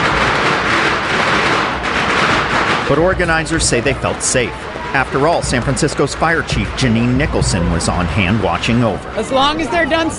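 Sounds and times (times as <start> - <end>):
firecrackers exploding at a parade: 0.0 - 5.7
speech: 2.9 - 10.1.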